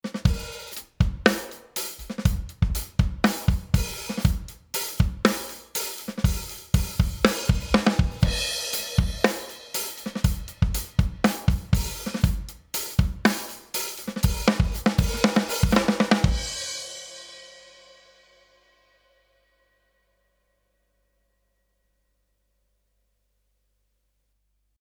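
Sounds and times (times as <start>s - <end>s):
compressed drums: 0.0s - 16.8s.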